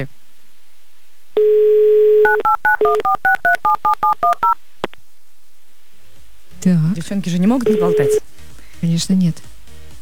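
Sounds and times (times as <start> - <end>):
telephone dial tone: 1.4 - 4.6, 7.6 - 8.2
speech: 2.4 - 4.7, 6.6 - 9.5.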